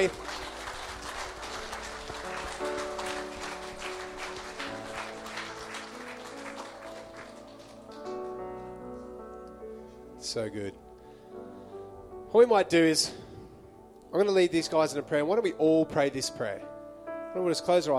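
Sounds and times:
speech: 0.0 - 0.2, 10.3 - 10.9, 12.3 - 13.3, 14.1 - 16.7, 17.3 - 17.9
audience applause: 0.0 - 8.9.

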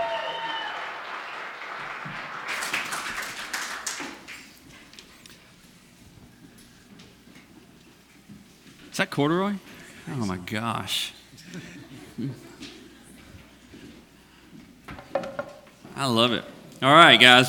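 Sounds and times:
audience applause: 0.0 - 4.6
speech: 9.0 - 12.5, 16.0 - 17.4.

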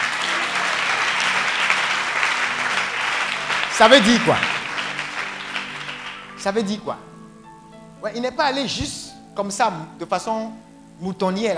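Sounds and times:
audience clapping and cheering: 0.0 - 7.0
speech: 3.8 - 4.6, 6.4 - 7.1, 8.0 - 11.5.

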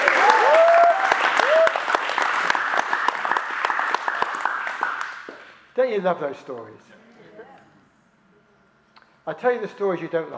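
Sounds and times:
audience applause: 0.0 - 5.5
speech: 5.9 - 7.0, 9.3 - 10.3.

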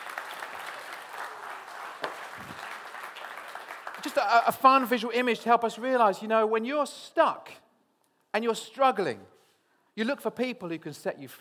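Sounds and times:
crowd clapping: 0.0 - 5.1
speech: 4.0 - 7.6, 8.4 - 9.3, 10.0 - 11.4.

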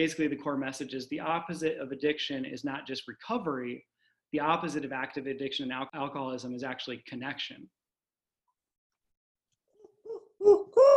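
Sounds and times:
speech: 0.0 - 7.8
owl hooting: 10.0 - 10.9.

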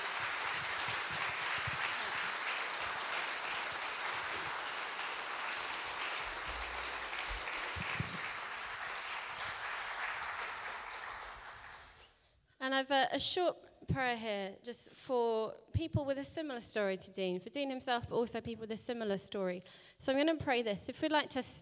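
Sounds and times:
applause: 0.0 - 12.1
speech: 12.7 - 21.6.

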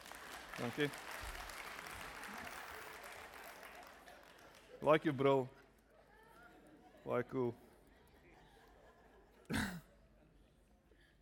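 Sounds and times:
audience applause: 0.0 - 5.0
speech: 0.6 - 1.2, 4.8 - 5.6, 7.0 - 7.6.

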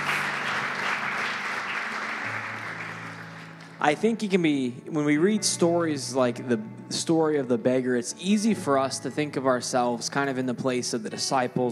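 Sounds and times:
audience applause: 0.0 - 3.8
speech: 3.8 - 11.7.

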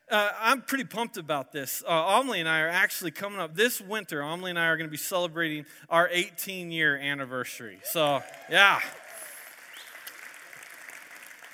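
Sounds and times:
speech: 0.1 - 9.0
audience clapping: 8.0 - 11.5.

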